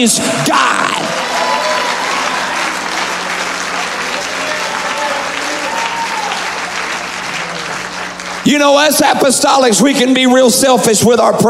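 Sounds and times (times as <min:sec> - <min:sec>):
speech: 0:00.0 - 0:00.8, 0:08.5 - 0:11.4
audience clapping hands: 0:00.9 - 0:09.9.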